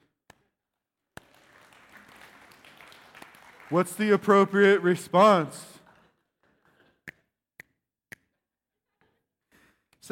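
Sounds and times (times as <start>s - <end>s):
audience clapping: 1.1s - 6.1s
speech: 3.7s - 5.7s.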